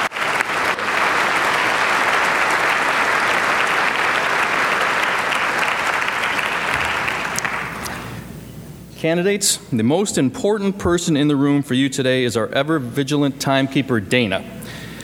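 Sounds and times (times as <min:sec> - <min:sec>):
audience applause for debate candidates: 0:00.0 - 0:08.2
speech: 0:09.0 - 0:14.6.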